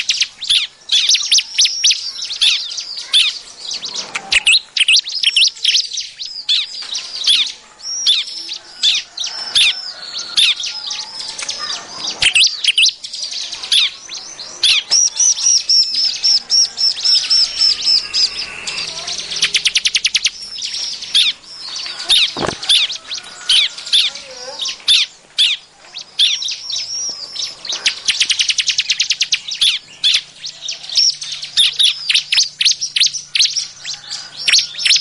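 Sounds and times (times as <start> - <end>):
prinia singing a fast run of sharp high squeaky chirps: 0.0 - 34.9.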